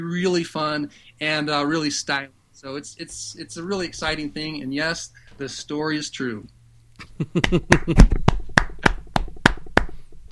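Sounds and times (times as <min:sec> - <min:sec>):
speech: 0:00.0 - 0:08.2
hand clapping: 0:07.4 - 0:10.2.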